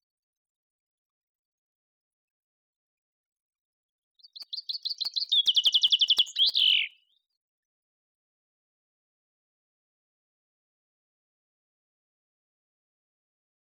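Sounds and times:
common chaffinch Fringilla coelebs song: 0:04.2 - 0:07.4.

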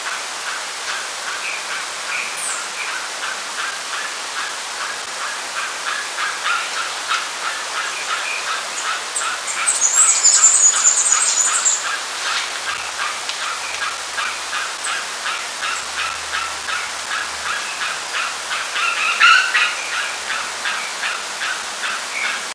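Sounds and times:
background hiss: 0:00.0 - 0:22.5
bird harsh calls: 0:00.5 - 0:22.5
bird whistles: 0:09.7 - 0:11.8.

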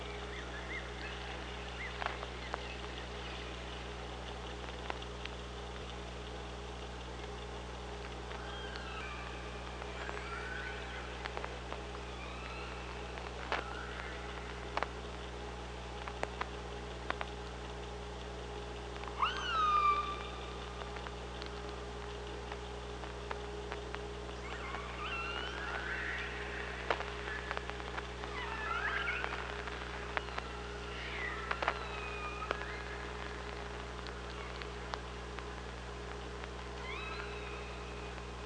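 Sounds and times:
steady electrical hum: 0:00.0 - 0:38.4
killer whale calls: 0:08.4 - 0:15.0, 0:19.1 - 0:20.9, 0:24.4 - 0:38.4.

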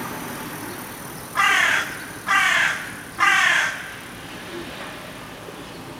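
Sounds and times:
carrion crow Corvus corone harsh caws: 0:01.4 - 0:04.0.

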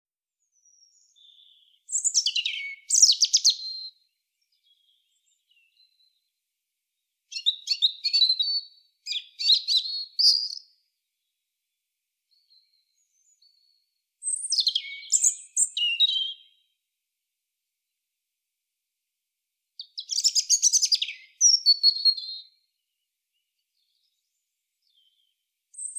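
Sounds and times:
European robin song: 0:00.4 - 0:06.4, 0:07.3 - 0:11.3, 0:12.3 - 0:16.8, 0:19.8 - 0:25.9.

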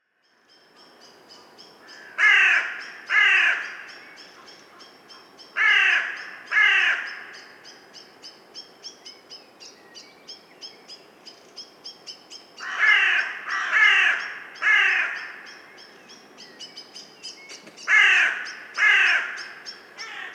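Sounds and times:
carrion crow Corvus corone cawing: 0:01.8 - 0:07.5, 0:12.6 - 0:15.6, 0:17.8 - 0:20.3.

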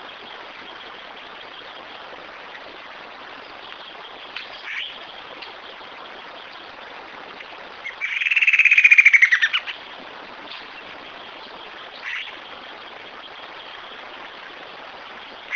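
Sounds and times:
background hiss: 0:00.0 - 0:15.5
bird trilling: 0:07.8 - 0:09.7.

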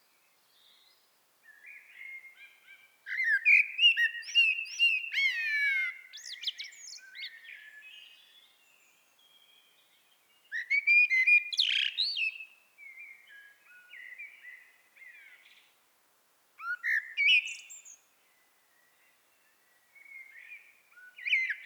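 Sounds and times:
common blackbird singing: 0:00.6 - 0:09.6, 0:10.5 - 0:15.5, 0:16.6 - 0:18.0, 0:20.0 - 0:21.6.

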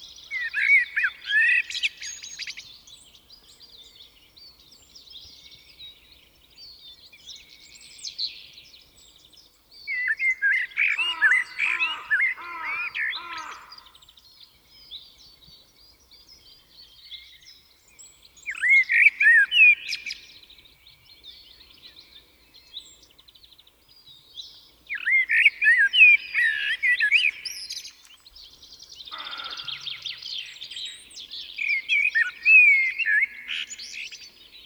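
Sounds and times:
common blackbird singing: 0:00.0 - 0:34.6
other birds twittering: 0:10.6 - 0:14.2, 0:24.9 - 0:34.6.

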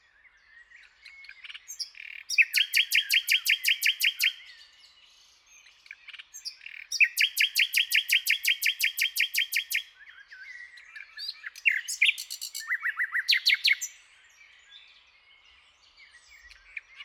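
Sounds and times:
common nightingale singing rapid repeated notes: 0:01.2 - 0:04.6, 0:05.6 - 0:14.1.

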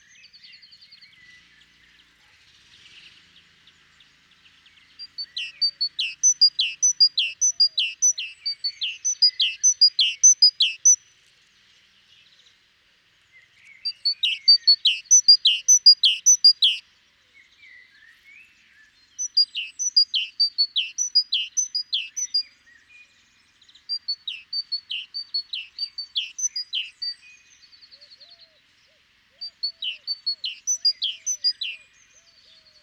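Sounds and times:
great tit singing: 0:03.8 - 0:11.1, 0:13.6 - 0:16.9, 0:19.0 - 0:22.8, 0:23.5 - 0:28.5, 0:29.3 - 0:32.8.

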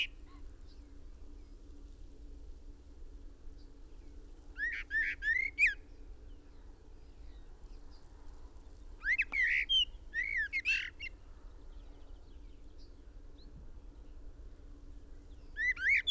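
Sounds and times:
common blackbird song: 0:03.5 - 0:14.3, 0:15.2 - 0:16.0.

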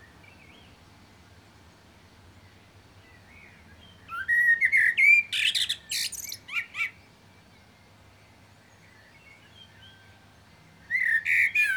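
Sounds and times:
common blackbird Turdus merula whistled warbling song with shrill twitters: 0:03.3 - 0:07.0, 0:10.9 - 0:11.7.

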